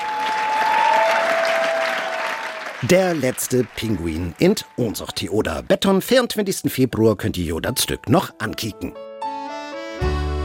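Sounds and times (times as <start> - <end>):
theatre audience applause: 0.0 - 4.7
speech: 2.8 - 9.0.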